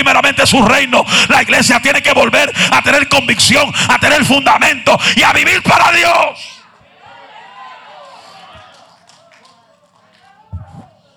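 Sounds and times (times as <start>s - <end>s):
speech: 0.0s - 6.5s
thin scattered audience applause: 7.1s - 11.1s.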